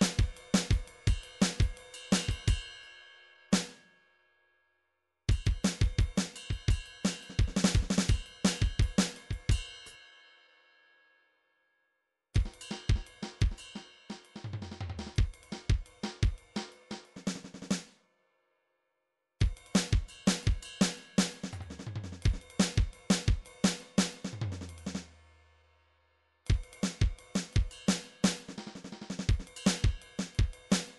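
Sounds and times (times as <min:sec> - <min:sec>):
MIDI drum cymbal: 0:00.0 - 0:02.8, 0:05.3 - 0:09.9, 0:12.4 - 0:17.9, 0:19.4 - 0:25.3, 0:26.5 - 0:30.9.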